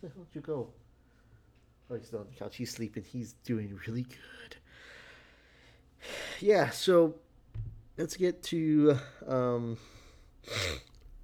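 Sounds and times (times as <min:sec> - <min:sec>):
speech: 0:00.0 - 0:00.9, 0:01.9 - 0:05.0, 0:06.0 - 0:10.9
person sniffling: 0:09.9 - 0:11.0.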